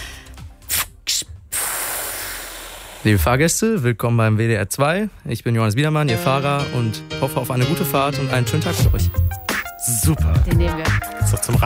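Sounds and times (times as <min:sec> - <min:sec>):
voice imitating bus kneeling air hiss: 0:00.0 - 0:03.2
speech: 0:03.0 - 0:11.6.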